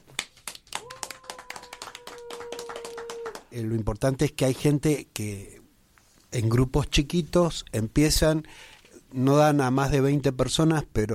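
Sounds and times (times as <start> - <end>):
hands clapping: 0.0 - 3.5
speech: 3.6 - 5.6, 6.3 - 11.1.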